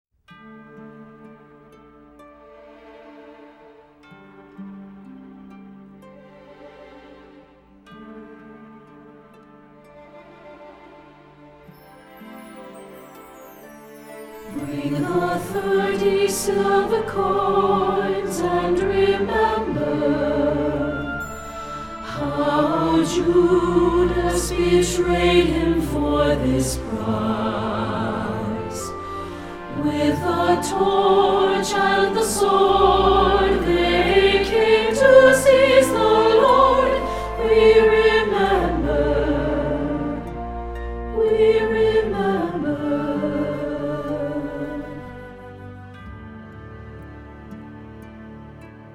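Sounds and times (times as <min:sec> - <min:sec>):
soprano singing: 0:10.1 - 0:48.7.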